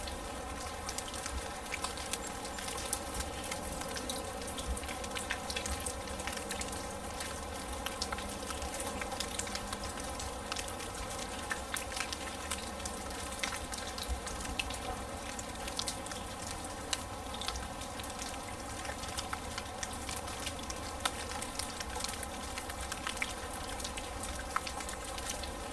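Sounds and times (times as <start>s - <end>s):
smooth rain on grass: 0.0s - 25.7s.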